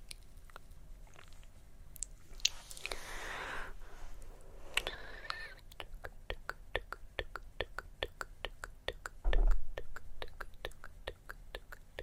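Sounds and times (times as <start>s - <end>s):
wet mouth clicks: 0.0s - 3.0s, 4.7s - 12.0s
low thump: 9.2s - 9.8s.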